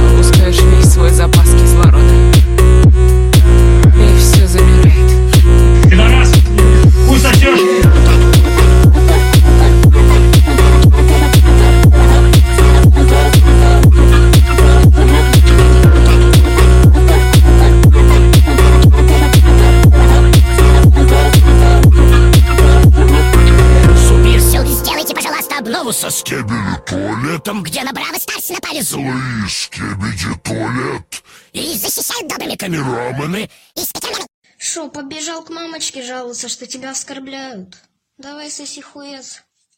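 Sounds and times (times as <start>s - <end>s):
Brazilian phonk music for gym and workout: 0.0s - 30.7s.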